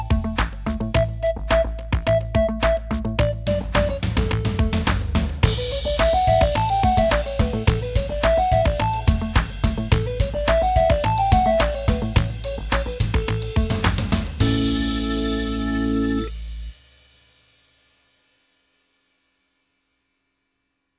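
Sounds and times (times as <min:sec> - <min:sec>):
karaoke music: 0:01.0 - 0:13.8, 0:14.4 - 0:16.4.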